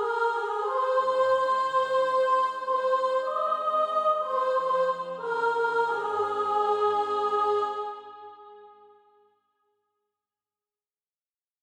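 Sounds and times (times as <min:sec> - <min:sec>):
soprano singing practice music: 0:00.0 - 0:08.8.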